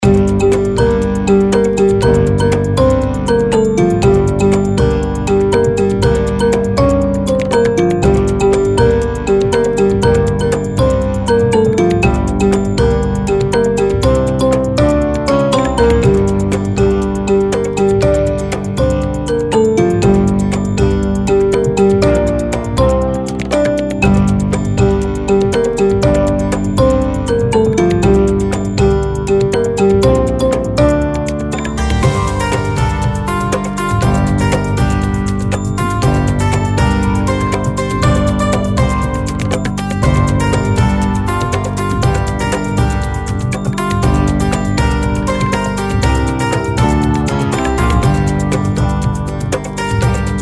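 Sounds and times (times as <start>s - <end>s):
ethnic music: 0.0s - 50.3s.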